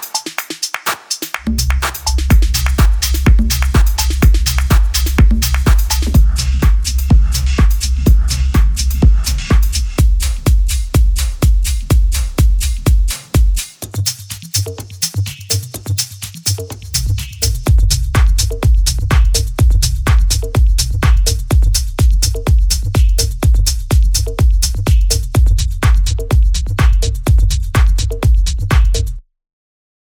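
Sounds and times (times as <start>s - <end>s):
tech house top loops: 0.0s - 29.2s.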